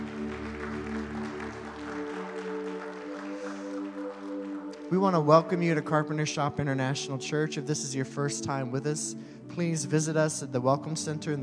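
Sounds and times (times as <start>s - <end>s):
church congregation applauding the worship team: 0.0s - 8.0s
sustained keyboard chords: 0.0s - 11.4s
speech: 4.9s - 11.4s.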